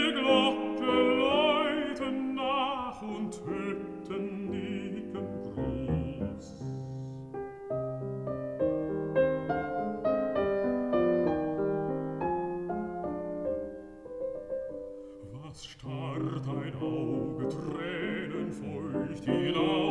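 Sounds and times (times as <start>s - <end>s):
person singing: 0.0s - 7.3s, 15.0s - 19.9s
piano: 0.0s - 19.9s.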